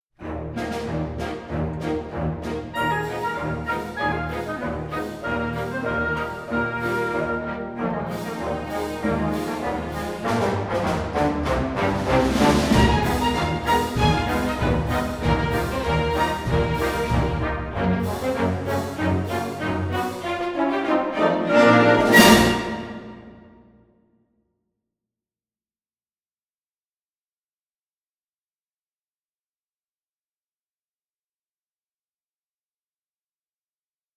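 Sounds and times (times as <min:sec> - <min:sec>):
solo cakewalk music: 0:00.3 - 0:23.2.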